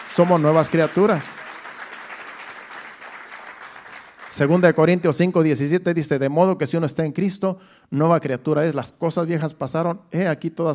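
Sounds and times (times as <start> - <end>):
audience applause: 0.0 - 4.6
speech: 0.2 - 1.5, 4.4 - 10.7.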